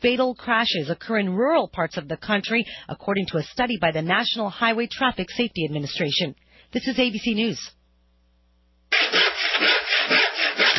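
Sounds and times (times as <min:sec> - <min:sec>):
speech: 0:00.0 - 0:07.8
sawing branches off a Christmas tree: 0:08.9 - 0:10.7.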